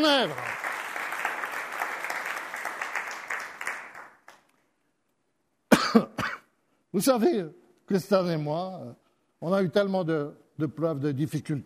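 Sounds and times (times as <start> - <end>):
speech: 0.0 - 0.7, 5.9 - 6.1, 6.9 - 11.6
church congregation clapping acclaiming Jesus: 0.0 - 4.8.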